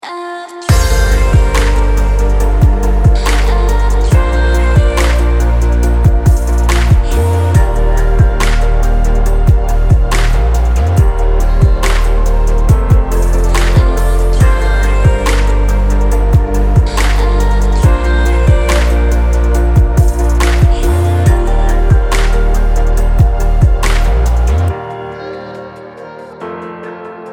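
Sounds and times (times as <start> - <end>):
chillstep music: 0.0 - 27.3.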